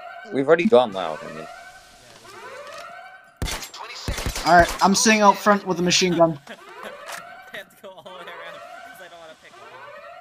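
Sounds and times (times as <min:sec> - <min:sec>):
video game alarm going off: 0:00.0 - 0:10.1
speech: 0:00.2 - 0:01.6, 0:04.4 - 0:06.6
laughter: 0:05.7 - 0:09.2.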